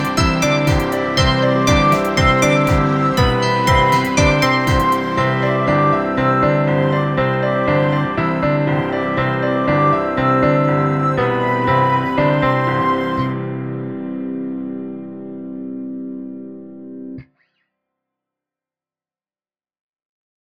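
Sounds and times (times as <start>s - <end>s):
flute orchestra playing: 0.0s - 14.0s.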